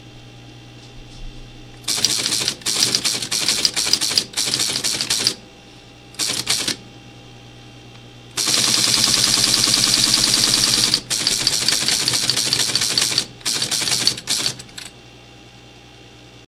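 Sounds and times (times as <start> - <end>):
ASR33 teletype punch: 1.8 - 5.4, 6.2 - 6.8, 8.3 - 15.0.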